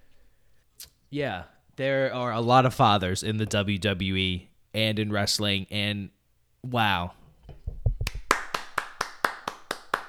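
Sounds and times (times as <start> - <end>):
speech: 1.1 - 7.2
low thumps: 7.5 - 8.3
single person clapping hands: 8.0 - 10.0.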